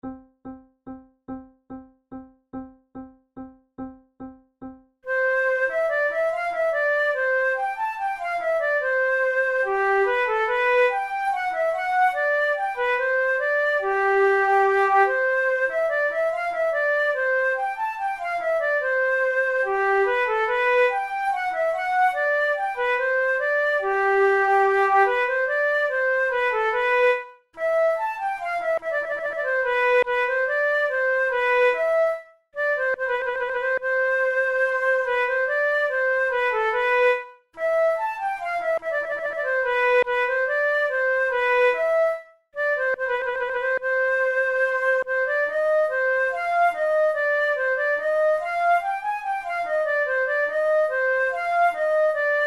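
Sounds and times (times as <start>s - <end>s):
minuet music: 0.0s - 52.4s.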